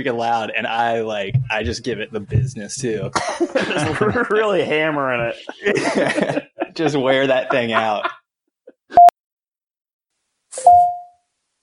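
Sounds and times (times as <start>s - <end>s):
speech: 0.0s - 8.2s
laughter: 3.1s - 9.0s
incoming email notification alert: 10.6s - 11.2s.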